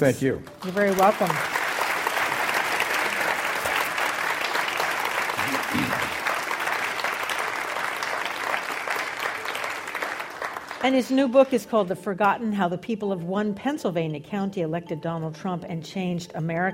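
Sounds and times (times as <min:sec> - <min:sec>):
speech: 0:00.0 - 0:01.5, 0:10.8 - 0:16.7
enthusiastic studio audience applause at the close of a radio interview: 0:00.5 - 0:10.9.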